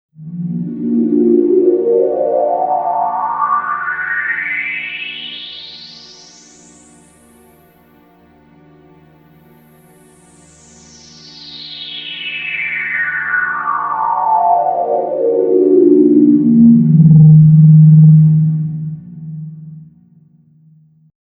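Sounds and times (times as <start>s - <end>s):
sweep sound: 0.3s - 5.1s, 11.1s - 20.0s.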